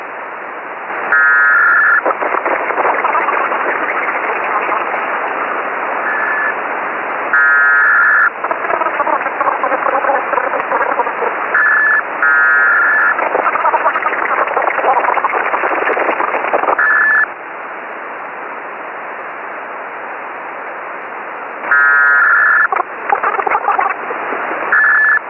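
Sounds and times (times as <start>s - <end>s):
Parkhill bursts on HF radio: 0.9s - 6.6s, 7.4s - 17.3s, 21.7s - 25.2s.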